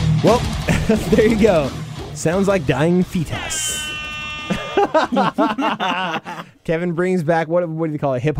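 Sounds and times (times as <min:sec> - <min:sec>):
speech: 0:00.2 - 0:03.6, 0:04.9 - 0:08.3
laughter: 0:00.7 - 0:01.7, 0:04.4 - 0:06.6
hip-hop air horn sound effect: 0:03.4 - 0:04.9.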